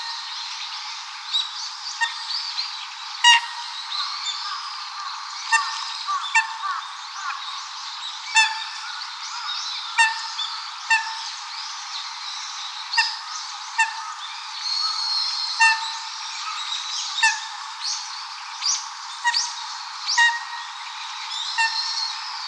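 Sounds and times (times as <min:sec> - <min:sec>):
Eurasian coot honking calls: 0:03.2 - 0:07.4, 0:08.3 - 0:11.5, 0:12.8 - 0:18.1, 0:19.2 - 0:22.4.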